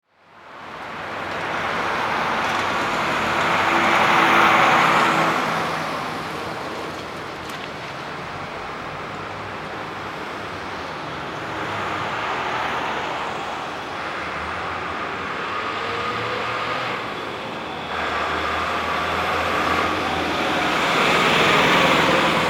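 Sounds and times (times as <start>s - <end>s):
city traffic: 0.0s - 22.4s.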